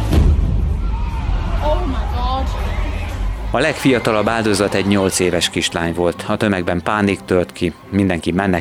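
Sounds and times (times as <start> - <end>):
bomb explosion at a concert: 0.1 - 2.8
speech: 3.5 - 8.5.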